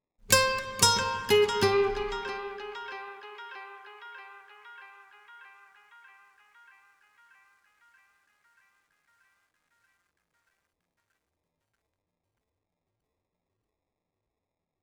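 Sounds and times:
acoustic guitar one-shot: 0.2s - 5.0s.

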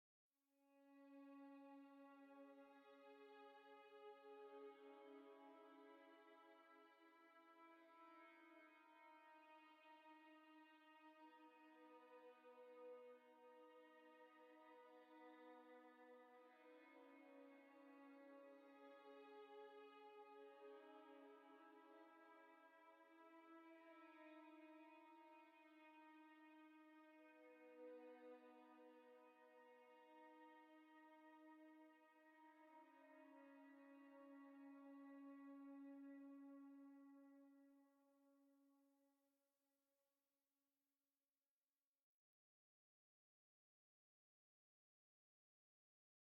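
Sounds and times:
violin: 0.7s - 37.8s.

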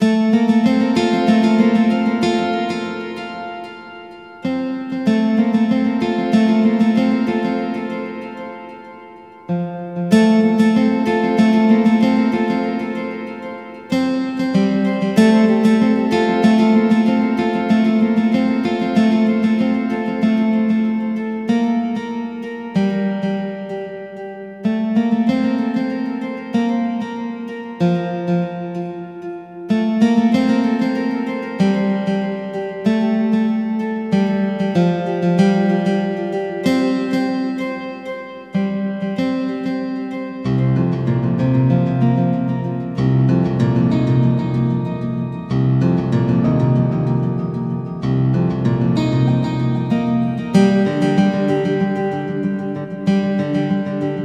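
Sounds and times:
guitar: 0.0s - 54.2s.

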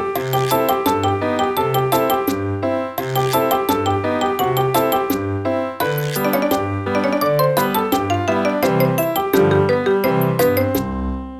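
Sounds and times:
background music: 0.2s - 11.3s.

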